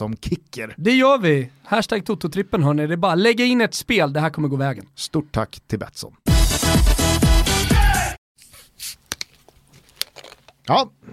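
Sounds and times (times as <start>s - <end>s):
speech: 0.0s - 7.2s, 10.7s - 11.1s
opening a can of Pepsi: 9.0s - 10.6s.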